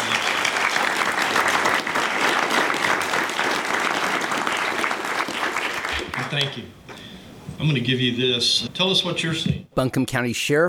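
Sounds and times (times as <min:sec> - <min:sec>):
audience applause: 0:00.0 - 0:06.6
speech: 0:06.3 - 0:07.0, 0:07.6 - 0:10.6.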